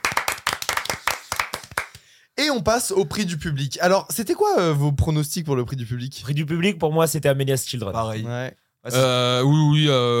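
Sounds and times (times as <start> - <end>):
hands clapping: 0.0 - 2.1
speech: 2.4 - 10.1.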